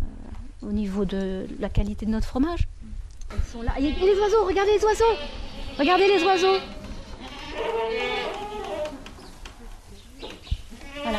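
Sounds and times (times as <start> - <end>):
speech: 0.6 - 6.8
goats bleating as a herd: 3.6 - 9.0, 10.8 - 11.1.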